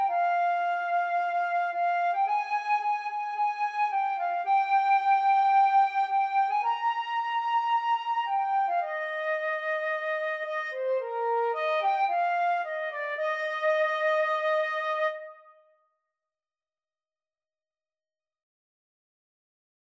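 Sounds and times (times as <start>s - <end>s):
flute and clarinet duet: 0.0s - 15.4s.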